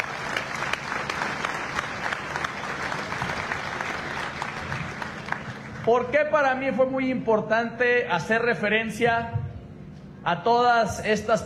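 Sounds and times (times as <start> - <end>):
audience applause: 0.0 - 6.0
speech: 5.9 - 9.4, 10.2 - 11.4.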